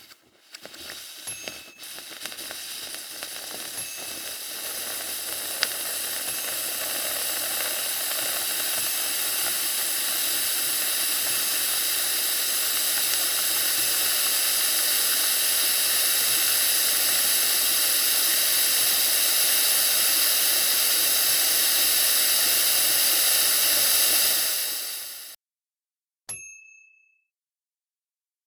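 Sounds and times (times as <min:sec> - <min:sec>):
espresso machine steamer: 0:00.0 - 0:25.4.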